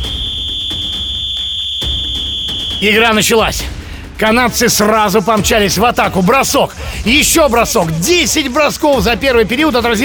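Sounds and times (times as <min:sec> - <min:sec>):
referee's whistle: 0:00.0 - 0:03.6
speech: 0:02.8 - 0:10.0.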